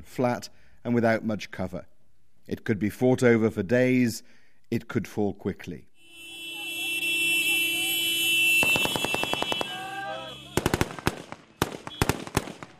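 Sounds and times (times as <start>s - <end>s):
speech: 0.1s - 1.9s, 2.5s - 5.9s
voices and commotion of NTC troops: 6.3s - 11.6s
celebratory automatic gunfire from NTC troops near Harawa in Libya: 8.6s - 9.9s, 10.5s - 12.7s
celebratory single gunshots and short bursts from NTC troops in Libya: 8.6s - 12.7s.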